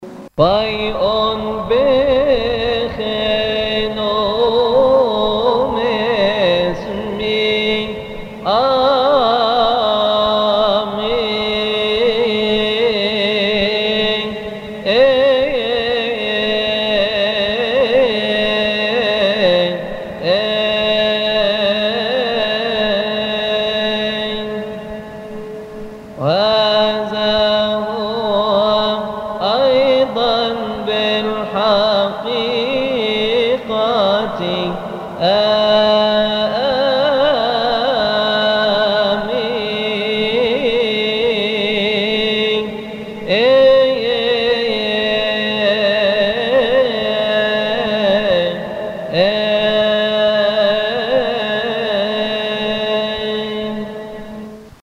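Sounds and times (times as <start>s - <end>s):
Coptic and Arabic chant: 0.0s - 54.8s.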